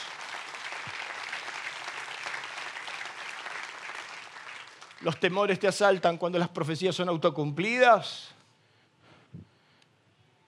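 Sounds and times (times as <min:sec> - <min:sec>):
audience applauding loudly: 0:00.0 - 0:05.7
speech: 0:05.0 - 0:08.4.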